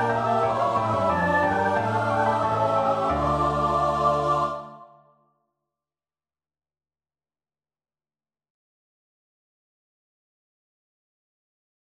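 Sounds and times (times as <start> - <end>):
choir singing: 0.0 - 5.2.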